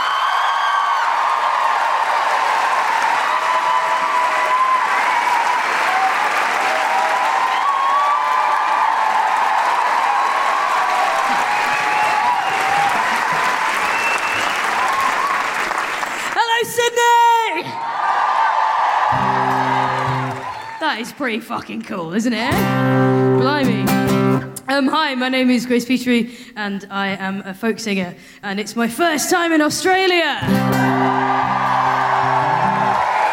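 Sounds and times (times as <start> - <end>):
audience whoops and cheers in Sydney: 0.0 - 15.8, 17.5 - 20.8, 30.5 - 33.3
audience applause at a live show in Sydney: 0.0 - 17.0, 17.6 - 21.4, 30.5 - 33.3
speech: 20.9 - 24.0, 24.8 - 31.3.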